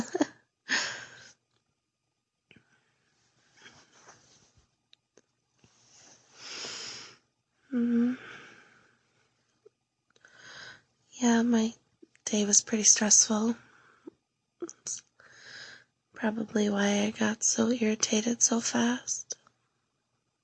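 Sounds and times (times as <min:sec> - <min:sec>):
breathing close to the ear: 0:00.7 - 0:01.4, 0:05.9 - 0:07.2, 0:08.2 - 0:09.1, 0:10.2 - 0:10.8, 0:13.6 - 0:14.1, 0:15.2 - 0:15.9
speech: 0:11.4 - 0:13.7, 0:16.2 - 0:19.4.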